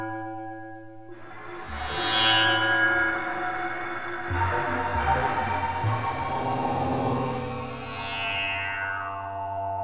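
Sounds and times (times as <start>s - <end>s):
processed sawtooth synth: 0.3s - 9.5s.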